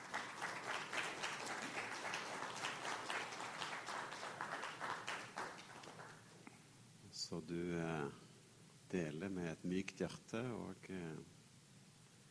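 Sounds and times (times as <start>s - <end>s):
audience applause: 0.0s - 6.3s
speech: 7.3s - 8.3s, 8.9s - 11.4s.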